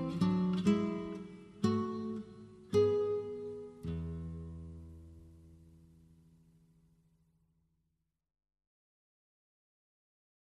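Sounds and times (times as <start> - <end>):
guitar: 0.0 - 7.4.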